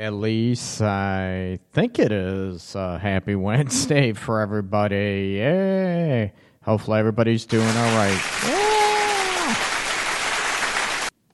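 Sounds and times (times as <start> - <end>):
speech: 0.0 - 8.6
applause: 7.5 - 11.1.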